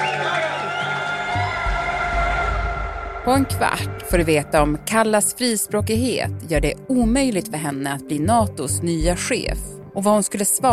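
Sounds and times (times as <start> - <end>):
party members cheering on election night in Tallinn: 0.0 - 4.2
speech: 3.2 - 10.7.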